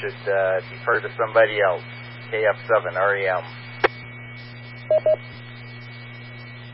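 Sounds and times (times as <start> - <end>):
speech: 0.0 - 3.7, 4.9 - 5.5
radio hum and hiss: 0.0 - 6.7
DTMF touch-tone dialing beeps over radio autopatch: 4.9 - 5.2.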